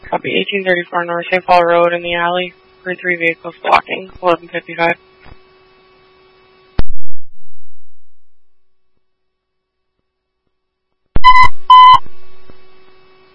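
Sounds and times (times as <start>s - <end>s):
speech: 0.1s - 5.1s
dispatch alert tones for motor vehicle crash detection: 11.2s - 12.1s.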